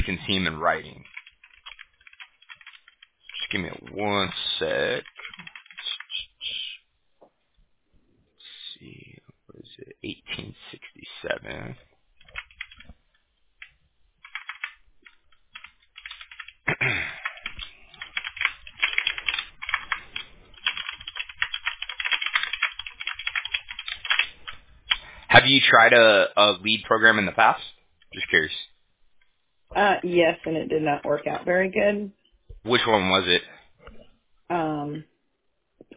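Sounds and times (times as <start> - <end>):
speech: 0.2 - 1.1, 3.5 - 5.1, 11.2 - 11.9, 25.3 - 28.6, 29.8 - 33.5, 34.5 - 35.1
computer keyboard typing to copy and paste text: 0.8 - 6.3, 12.2 - 25.1.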